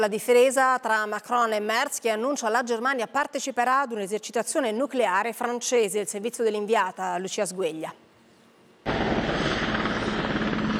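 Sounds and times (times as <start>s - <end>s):
speech: 0.0s - 8.0s
military helicopter flying: 8.9s - 10.7s.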